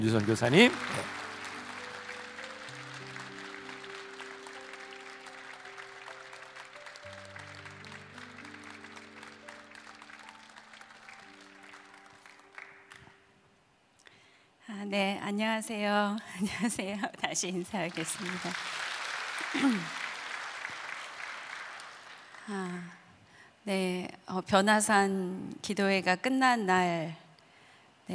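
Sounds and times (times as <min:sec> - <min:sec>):
speech: 0:00.0 - 0:01.2, 0:15.0 - 0:18.8, 0:19.6 - 0:20.0, 0:22.5 - 0:23.0, 0:23.6 - 0:27.2
sustained low keyboard chords: 0:00.0 - 0:13.0
audience applauding: 0:00.0 - 0:13.2, 0:17.7 - 0:22.6
laughter: 0:19.4 - 0:20.0.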